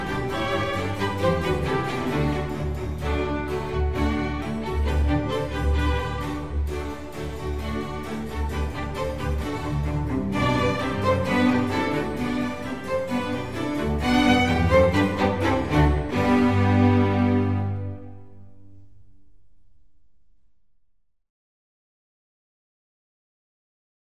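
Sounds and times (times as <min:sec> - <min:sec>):
concerto for strings in G major: 0:00.0 - 0:19.1.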